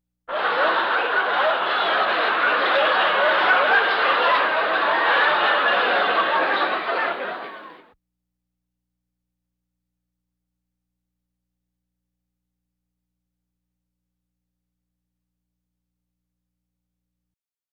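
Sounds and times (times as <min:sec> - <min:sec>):
audience laughter: 0:00.3 - 0:08.0.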